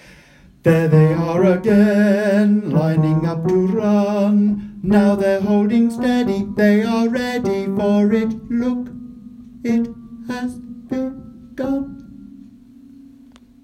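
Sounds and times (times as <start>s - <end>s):
ending bass part: 0.7s - 13.6s.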